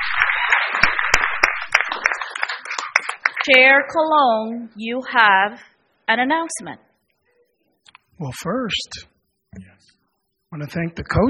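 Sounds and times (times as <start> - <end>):
crowd applauding: 0.0 - 4.0
speech: 3.4 - 6.9, 8.2 - 9.9, 10.5 - 11.2.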